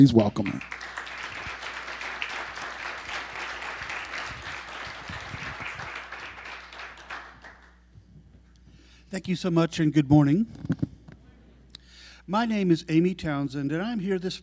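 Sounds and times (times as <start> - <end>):
speech: 0.0 - 0.8, 9.2 - 10.8, 12.3 - 14.4
audience applause: 0.4 - 7.8.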